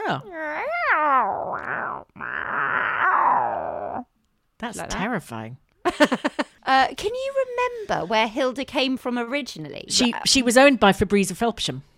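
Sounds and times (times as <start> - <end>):
person imitating a cat meow: 0.0 - 4.1
speech: 0.1 - 1.9, 4.6 - 11.9.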